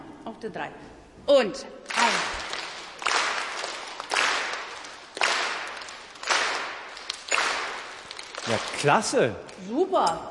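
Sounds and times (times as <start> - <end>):
speech: 0.4 - 2.4, 8.5 - 10.2
group clapping on beats one and three: 1.8 - 9.6.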